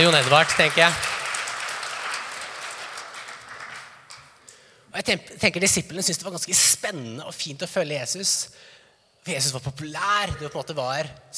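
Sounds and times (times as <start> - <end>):
speech: 0.0 - 1.1, 5.0 - 11.3
audience clapping: 0.0 - 4.6.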